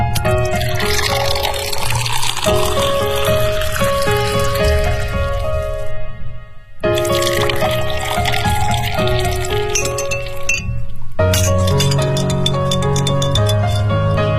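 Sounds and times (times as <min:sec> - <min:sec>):
cocktail of gin, blue curaçao, tonic water and ice being mixed and poured: 0:00.2 - 0:05.9, 0:06.9 - 0:14.2.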